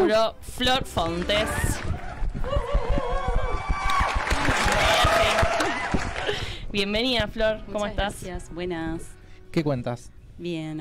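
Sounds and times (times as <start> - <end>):
speech: 0.1 - 2.6, 6.3 - 10.7
crowd clapping: 1.2 - 6.4
voices cheering and whooping: 1.4 - 6.4.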